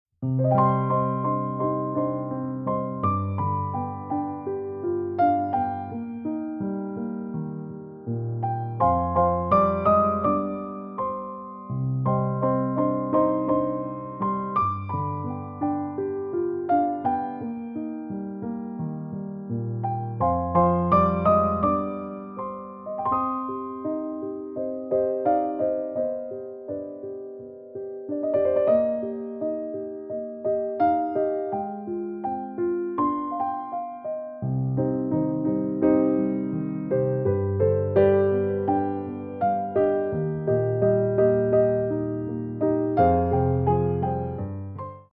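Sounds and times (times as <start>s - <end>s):
piano music: 0.2s - 45.1s.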